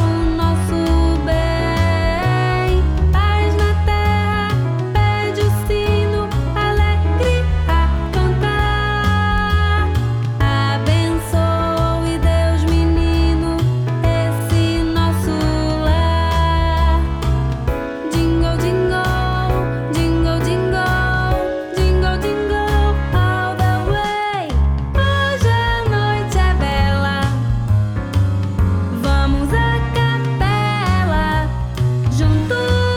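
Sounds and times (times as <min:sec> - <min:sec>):
jazzy music: 0:00.0 - 0:32.9.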